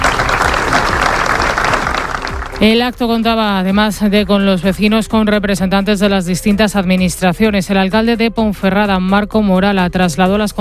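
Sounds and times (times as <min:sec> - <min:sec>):
crowd applauding at a solidarity gathering in front of a town hall: 0:00.0 - 0:02.9
speech: 0:02.6 - 0:10.6.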